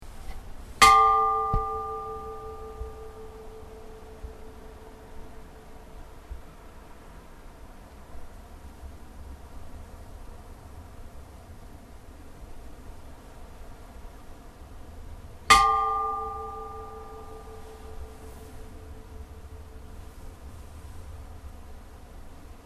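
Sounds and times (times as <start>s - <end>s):
church bells of Hvammskirkja in Hvammssveit tolling for a funeral: 0.8s - 5.8s, 15.5s - 20.3s.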